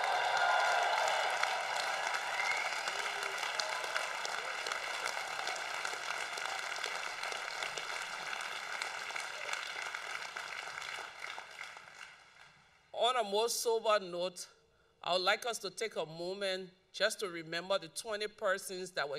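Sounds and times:
graduates cheering and applauding: 0.0 - 12.8
speech: 13.2 - 19.1.

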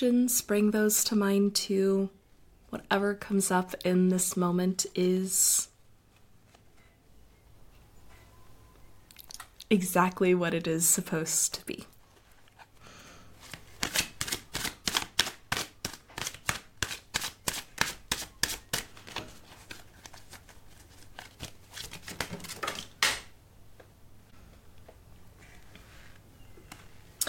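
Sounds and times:
speech: 0.0 - 5.7, 9.7 - 11.9
tarot cards being shuffled: 13.4 - 23.3.

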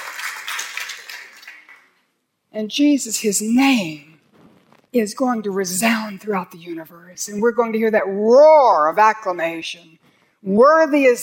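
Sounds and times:
audience clapping: 0.0 - 2.0
speech: 2.5 - 4.1, 4.9 - 11.2.

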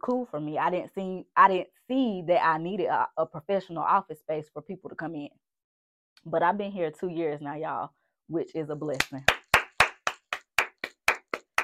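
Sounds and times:
speech: 0.0 - 5.5, 6.2 - 9.4
audience clapping: 9.0 - 11.6.

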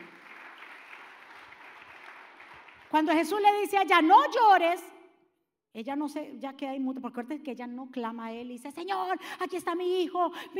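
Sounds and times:
audience applause: 0.0 - 3.0
speech: 2.9 - 4.9, 5.8 - 10.5.

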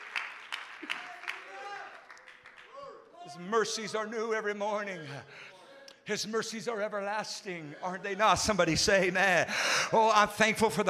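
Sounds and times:
people clapping hands: 0.0 - 3.1
speech: 3.3 - 5.5, 6.1 - 10.8.

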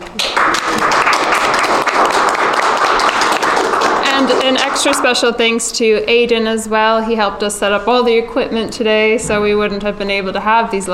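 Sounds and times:
audience applause: 0.0 - 5.3
speech: 4.5 - 10.9.

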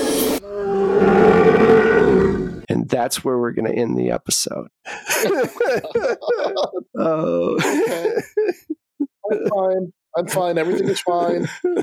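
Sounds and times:
loud nearby animal howl: 0.4 - 2.6
speech: 2.9 - 11.8
laughter: 4.9 - 9.6, 10.2 - 11.8.

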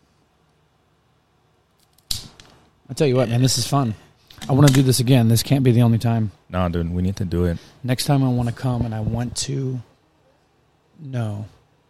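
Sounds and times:
snip cutting the end off a cigar: 1.8 - 2.6
speech: 2.9 - 9.9, 11.0 - 11.6.

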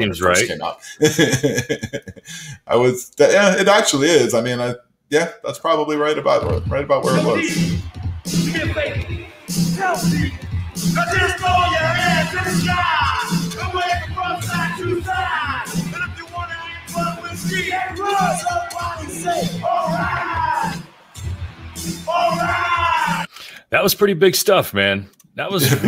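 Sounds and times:
speech: 0.0 - 15.9, 17.0 - 20.8, 21.8 - 25.8
laughter: 0.8 - 2.6, 25.6 - 25.8
huge concert crowd cheering and yelling: 6.9 - 23.3.

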